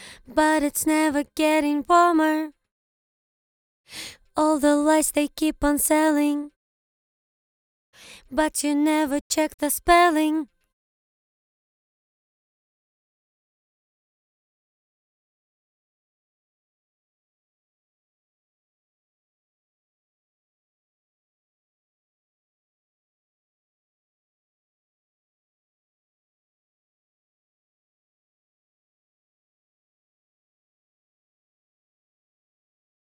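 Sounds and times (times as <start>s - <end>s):
a cappella vocals singing a verse in English: 0.0s - 2.6s, 3.9s - 6.6s, 8.0s - 10.5s.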